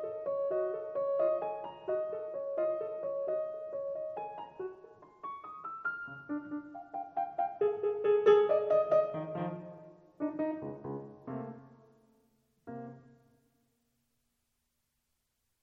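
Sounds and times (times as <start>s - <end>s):
improvised music: 0.0s - 12.0s.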